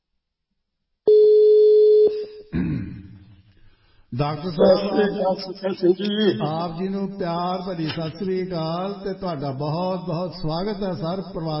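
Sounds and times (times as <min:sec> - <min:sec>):
telephone tone on a call placed to a guest: 0:01.1 - 0:02.2
speech: 0:04.2 - 0:11.5.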